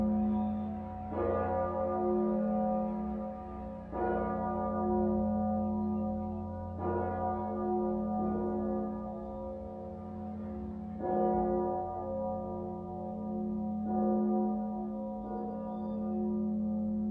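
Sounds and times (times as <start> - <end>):
cathedral bell in F sharp: 0.0 - 17.0.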